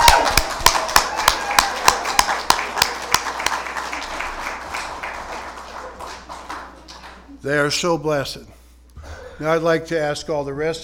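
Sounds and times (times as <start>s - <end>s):
audience cheering and clapping: 0.0s - 7.3s
speech: 7.4s - 8.6s, 9.4s - 10.8s.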